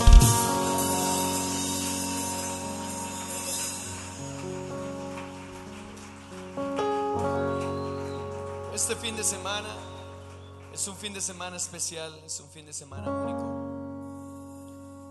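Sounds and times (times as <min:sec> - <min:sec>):
audience applause: 0:00.0 - 0:11.7
speech: 0:08.8 - 0:09.9, 0:10.8 - 0:13.6.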